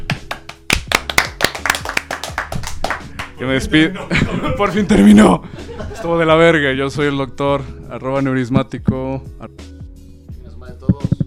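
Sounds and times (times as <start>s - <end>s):
hand clapping applause: 0.0s - 3.4s
speech: 3.4s - 9.7s
laughter: 3.6s - 6.5s.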